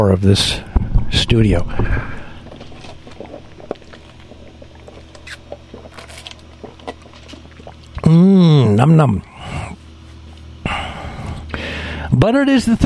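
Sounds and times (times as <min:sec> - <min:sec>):
speech: 0:00.0 - 0:02.2, 0:08.1 - 0:09.3, 0:12.1 - 0:12.8
person sipping Diet Cola: 0:02.0 - 0:08.7.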